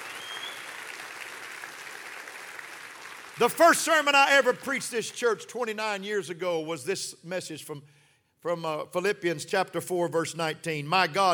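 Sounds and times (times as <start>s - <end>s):
audience clapping hands: 0.0s - 5.1s
speech: 3.4s - 11.3s.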